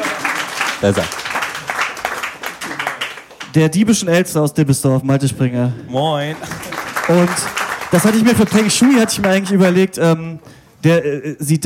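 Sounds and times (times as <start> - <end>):
live audience clapping: 0.0 - 4.0, 6.2 - 10.0
speech: 0.8 - 1.2, 3.6 - 11.6.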